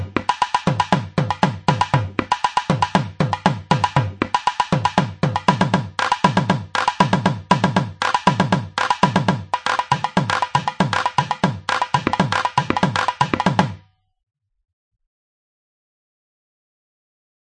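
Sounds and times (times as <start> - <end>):
tavil drum groove: 0.0 - 13.8.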